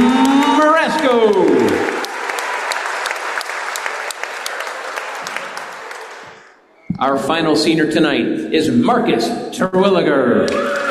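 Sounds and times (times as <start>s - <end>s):
audience applause: 0.0s - 6.6s, 10.5s - 10.8s
speech: 7.0s - 10.8s.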